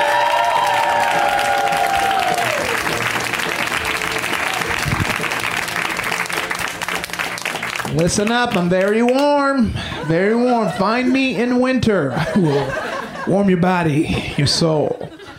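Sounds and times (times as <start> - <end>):
audience applause: 0.0 - 9.5
speech: 8.0 - 15.0
laughter: 9.5 - 15.3.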